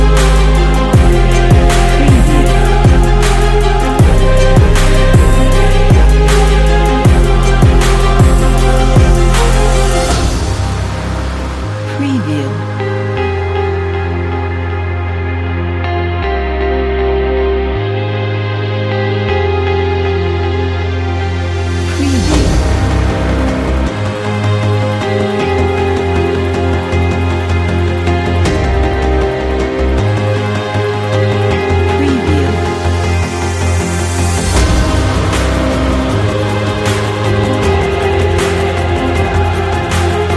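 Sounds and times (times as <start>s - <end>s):
epic hip hop beat: 0.0s - 12.0s, 12.6s - 40.3s.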